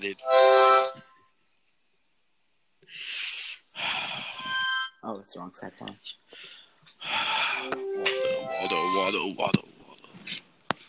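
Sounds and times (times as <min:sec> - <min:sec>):
speech: 0:00.0 - 0:00.6, 0:05.1 - 0:06.5, 0:07.6 - 0:09.7
harmonica being played: 0:00.0 - 0:01.0, 0:04.4 - 0:04.9, 0:07.4 - 0:09.3.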